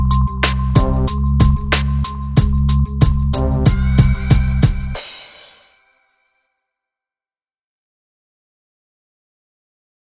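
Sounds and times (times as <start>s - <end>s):
music beat: 0.0s - 6.0s.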